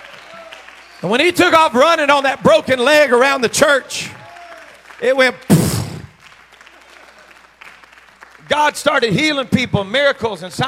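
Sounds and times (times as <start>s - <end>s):
audience applause: 0.0s - 2.5s, 3.3s - 9.1s
speech: 1.0s - 4.2s, 5.0s - 5.6s, 8.6s - 10.6s.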